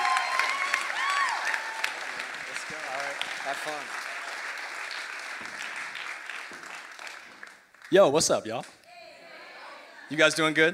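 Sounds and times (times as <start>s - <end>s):
audience applause: 0.0s - 7.9s
speech: 3.5s - 4.0s, 7.9s - 8.8s, 10.1s - 10.7s.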